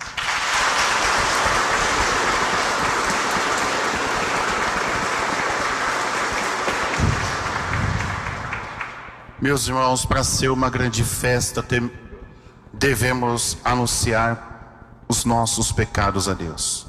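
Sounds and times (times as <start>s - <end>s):
applause: 0.0s - 9.4s
speech: 9.4s - 12.0s, 12.8s - 14.5s, 15.1s - 16.8s.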